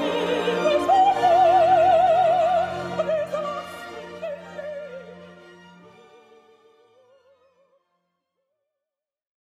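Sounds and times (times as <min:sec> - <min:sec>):
soprano operatic singing: 0:00.0 - 0:05.4.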